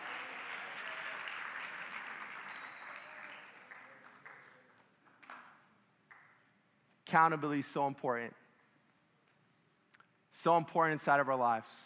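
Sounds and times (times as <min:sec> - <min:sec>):
audience applause: 0:00.0 - 0:05.4
speech: 0:07.1 - 0:08.4, 0:10.4 - 0:11.8.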